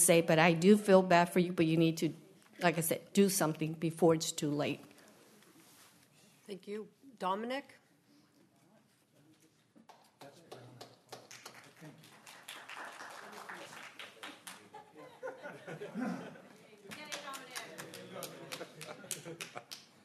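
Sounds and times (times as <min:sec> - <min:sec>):
speech: 0:00.0 - 0:04.9, 0:06.5 - 0:07.8
audience clapping: 0:09.8 - 0:14.8, 0:16.9 - 0:20.0
laughter: 0:14.5 - 0:16.8, 0:17.8 - 0:19.9.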